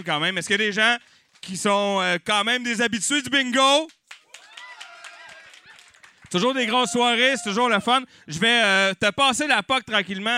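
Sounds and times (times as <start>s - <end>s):
speech: 0.0s - 4.0s, 6.3s - 10.3s
crowd clapping: 0.9s - 1.7s, 3.8s - 7.6s
voices cheering and calling out: 4.3s - 8.0s.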